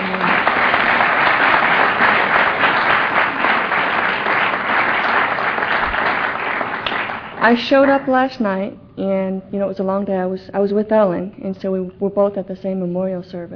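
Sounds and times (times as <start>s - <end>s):
crowd applauding: 0.0s - 8.2s
speech: 7.4s - 13.5s.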